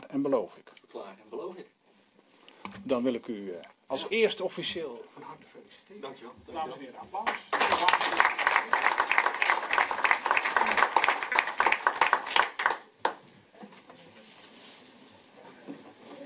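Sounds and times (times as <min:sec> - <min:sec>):
speech: 0:00.1 - 0:01.8, 0:02.7 - 0:09.0
council chamber audience applause for a newly sworn-in council member: 0:07.3 - 0:13.2.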